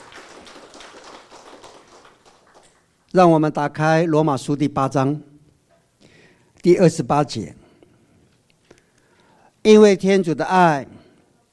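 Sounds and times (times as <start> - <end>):
crowd applause: 0.0 - 2.9
speech: 3.1 - 5.3, 6.6 - 7.6, 9.6 - 11.0.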